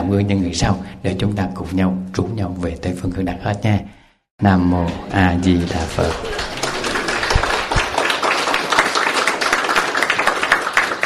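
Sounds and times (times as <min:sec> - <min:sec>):
speech: 0:00.1 - 0:06.5
audience applause: 0:04.8 - 0:11.0.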